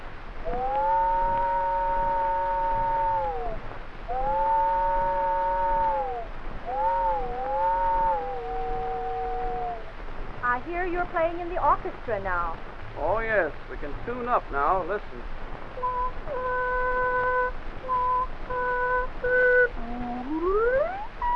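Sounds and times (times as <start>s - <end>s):
voice imitating a distant train whistle: 0.4s - 9.9s, 15.8s - 21.3s
speech: 11.1s - 15.4s.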